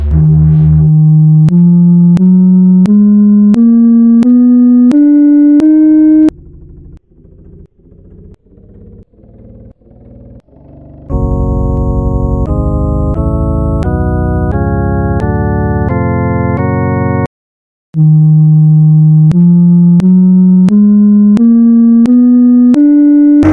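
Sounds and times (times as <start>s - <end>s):
B flat harmonic minor scale: 0.1s - 6.3s, 11.1s - 17.3s, 18.0s - 23.5s.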